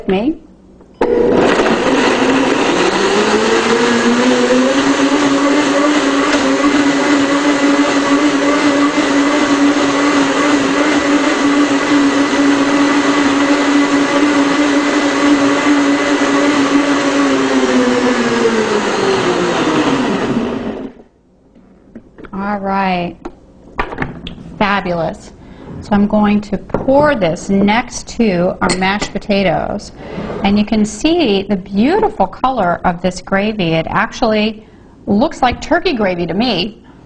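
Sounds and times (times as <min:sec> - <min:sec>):
speech: 0:00.0 - 0:01.9, 0:24.8 - 0:36.8
blender whipping mashed potato ingredients: 0:01.0 - 0:21.0.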